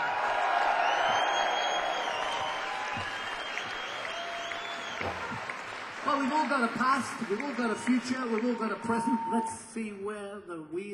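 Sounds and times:
audience cheers and whoops: 0:00.0 - 0:05.7, 0:07.5 - 0:09.7
audience applauding to welcome a guitarist: 0:00.0 - 0:09.6
speech: 0:06.2 - 0:10.9.

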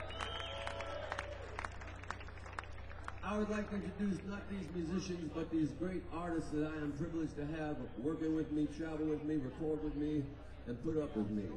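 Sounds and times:
people cheering: 0:00.0 - 0:03.4
audience clapping: 0:00.0 - 0:03.8
crowd murmur: 0:00.0 - 0:11.5
speech: 0:03.2 - 0:11.5.

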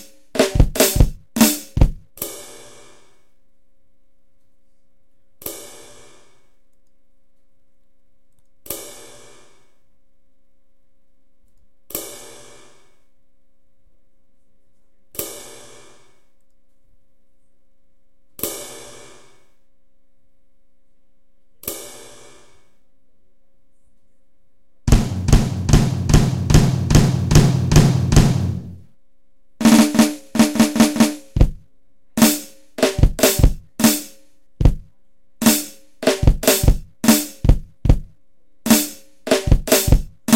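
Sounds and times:
drum scratch: 0:00.0 - 0:02.1, 0:24.9 - 0:28.8, 0:29.6 - 0:31.6, 0:32.2 - 0:38.1, 0:38.7 - 0:40.3.

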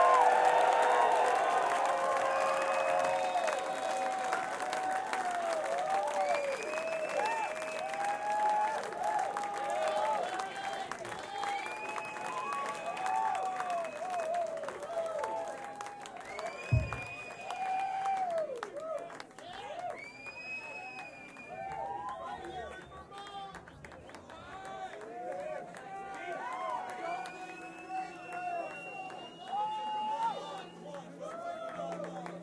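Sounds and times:
concert audience applauding and cheering: 0:00.0 - 0:32.4
thump: 0:16.7 - 0:17.1.

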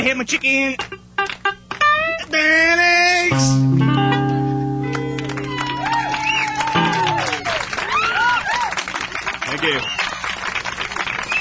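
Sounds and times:
speech: 0:00.0 - 0:01.4, 0:02.3 - 0:04.2
sustained tones: 0:03.3 - 0:07.6
crowd applauding: 0:04.8 - 0:11.3
whooping cries: 0:05.3 - 0:08.9.

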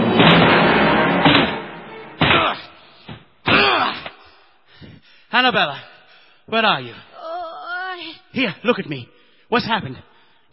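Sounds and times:
door being broken down: 0:00.2 - 0:02.6
speech: 0:05.4 - 0:07.1, 0:08.3 - 0:10.4.

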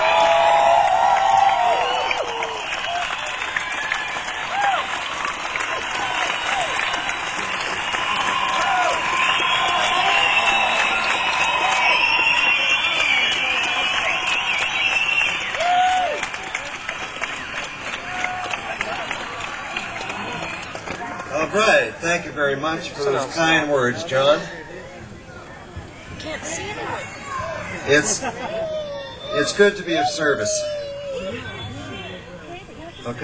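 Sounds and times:
audience whoops: 0:00.0 - 0:16.4, 0:28.4 - 0:31.6
audience applause welcoming a singer at a benefit event: 0:00.0 - 0:21.7
speech: 0:22.7 - 0:24.6, 0:27.9 - 0:28.8, 0:29.4 - 0:30.8, 0:33.1 - 0:33.2
laughter: 0:27.9 - 0:28.9.

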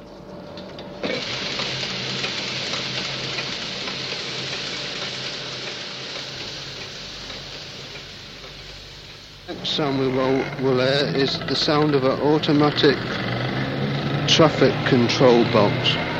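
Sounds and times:
hosiery knitting machine: 0:01.0 - 0:09.6
speech: 0:09.6 - 0:13.3, 0:14.4 - 0:16.1.

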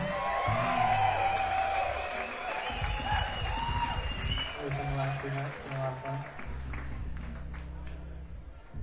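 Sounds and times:
whoops and shouts: 0:00.0 - 0:05.3
crowd applause: 0:00.0 - 0:08.7.

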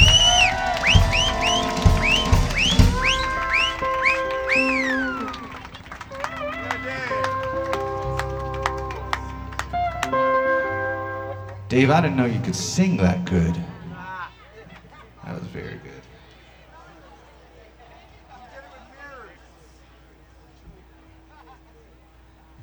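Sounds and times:
lively crowd cheering and whooping: 0:00.0 - 0:15.8
audience applause: 0:00.0 - 0:20.1
laughter: 0:00.0 - 0:22.6
speech: 0:11.8 - 0:13.7.

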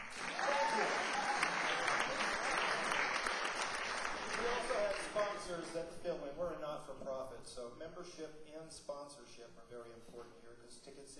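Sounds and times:
audience applause: 0:00.0 - 0:05.8
speech: 0:05.5 - 0:11.1.

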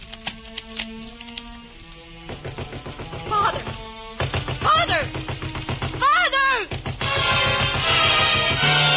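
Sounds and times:
door thudding shut: 0:02.3 - 0:08.8.

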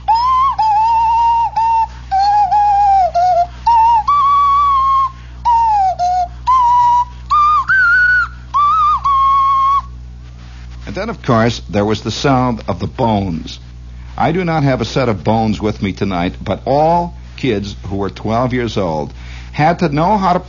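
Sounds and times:
nose flute playing: 0:00.0 - 0:10.0
speech: 0:11.2 - 0:20.4.

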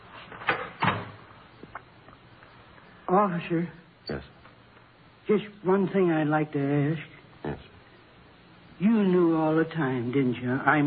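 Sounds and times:
door opening and closing: 0:00.4 - 0:01.3
speech: 0:03.1 - 0:04.4, 0:05.3 - 0:07.7, 0:08.8 - 0:10.8.

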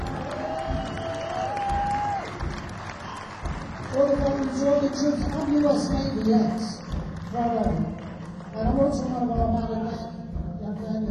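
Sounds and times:
audience applauding and cheering: 0:00.0 - 0:09.4
long high whistle: 0:00.5 - 0:02.3
speech: 0:04.0 - 0:07.9, 0:08.6 - 0:09.9.

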